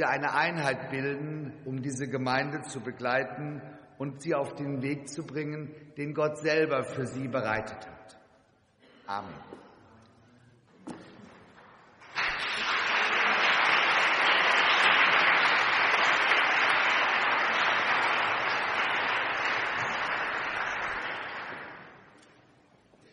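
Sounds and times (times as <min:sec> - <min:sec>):
speech: 0:00.0 - 0:07.9, 0:09.1 - 0:09.6
audience clapping: 0:11.6 - 0:22.2.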